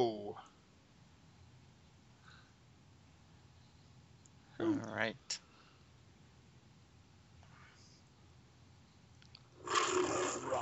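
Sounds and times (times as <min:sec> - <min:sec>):
speech: 0:04.6 - 0:05.4
MGM logo lion roaring: 0:09.6 - 0:10.6.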